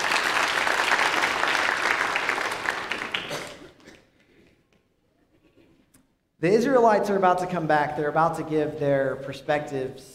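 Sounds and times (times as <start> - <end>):
round of applause: 0.0 - 3.7
speech: 6.4 - 10.1.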